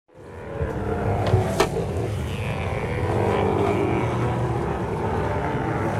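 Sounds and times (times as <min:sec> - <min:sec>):
Steller sea lion calling on land: 0:01.0 - 0:05.9.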